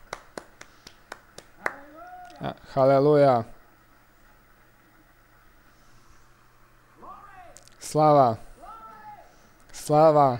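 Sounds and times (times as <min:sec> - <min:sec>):
church congregation clapping in praise to the Lord: 0:00.0 - 0:01.9
speech: 0:02.4 - 0:03.6, 0:07.9 - 0:08.5, 0:09.9 - 0:10.3.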